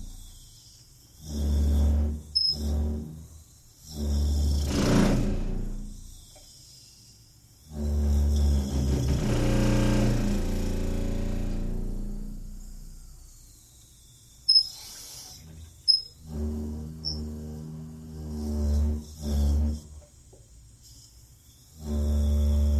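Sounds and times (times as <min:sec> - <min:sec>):
water pipes moaning in a basement: 0:01.2 - 0:06.2, 0:07.7 - 0:12.6, 0:15.4 - 0:20.0, 0:21.8 - 0:22.7.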